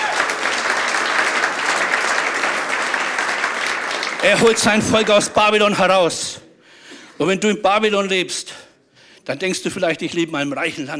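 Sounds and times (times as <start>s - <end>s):
audience clapping: 0.0s - 5.9s
speech: 4.2s - 6.4s, 7.2s - 8.6s, 9.3s - 10.9s.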